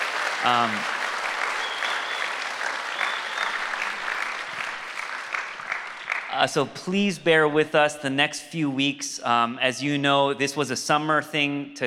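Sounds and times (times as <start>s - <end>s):
audience applauding hospitality volunteers: 0.0s - 6.6s
speech: 0.4s - 1.0s, 6.4s - 11.8s.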